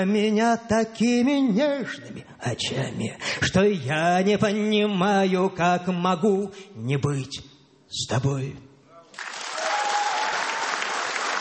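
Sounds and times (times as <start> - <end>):
speech: 0.0 - 9.3
applause accompanying a song: 9.1 - 11.4.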